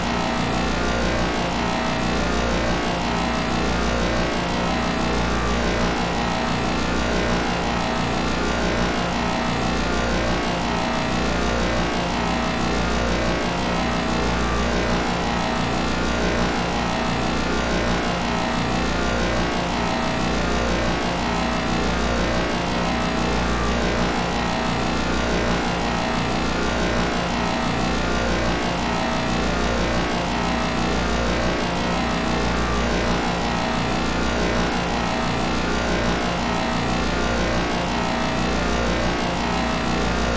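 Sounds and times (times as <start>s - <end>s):
sci-fi force field energy source hum: 0.0s - 40.3s.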